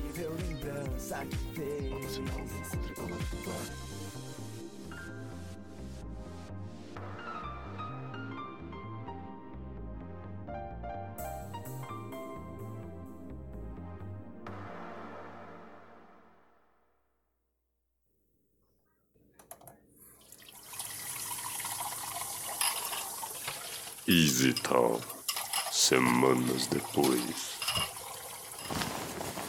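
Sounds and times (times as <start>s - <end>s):
soft music: 0.0s - 16.7s, 20.3s - 29.4s
speech: 1.1s - 4.2s, 24.1s - 25.2s, 25.9s - 27.9s
tap water running: 20.0s - 29.4s
dishes clinking while washing: 22.3s - 29.1s.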